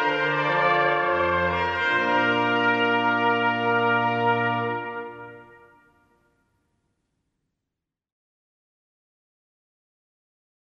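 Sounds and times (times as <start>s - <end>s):
trumpet piece: 0.0s - 6.4s.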